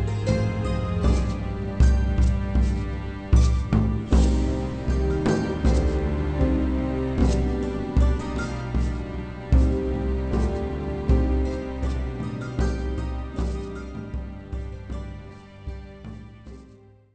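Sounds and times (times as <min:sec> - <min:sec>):
death music: 0:00.0 - 0:16.6.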